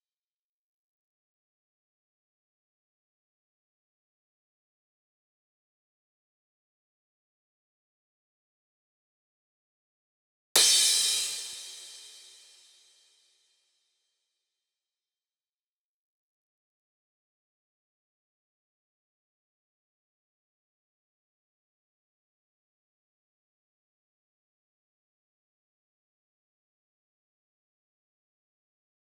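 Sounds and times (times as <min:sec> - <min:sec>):
crash cymbal in future house music: 0:10.6 - 0:12.9.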